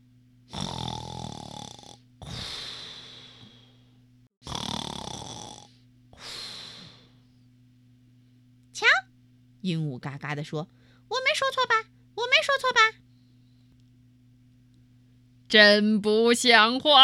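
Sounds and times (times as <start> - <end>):
voice imitating a hippo snoring: 0.5 - 3.7, 4.4 - 7.1
speech: 9.6 - 11.9, 15.5 - 17.0.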